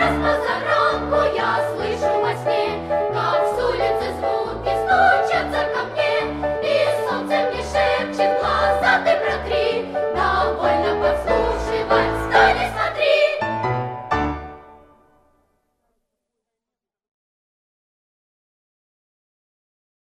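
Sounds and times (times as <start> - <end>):
children's choir: 0.0 - 13.7.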